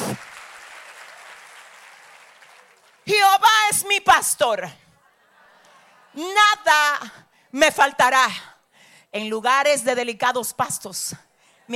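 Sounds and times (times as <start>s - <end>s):
church congregation applauding during a service: 0.0s - 3.2s
speech: 3.1s - 4.8s, 6.2s - 8.5s, 9.1s - 11.7s.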